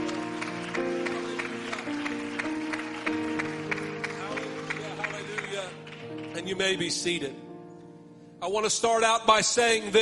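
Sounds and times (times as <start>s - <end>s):
audience clapping hands: 0.0s - 7.2s
speech: 6.4s - 7.4s, 8.5s - 9.9s.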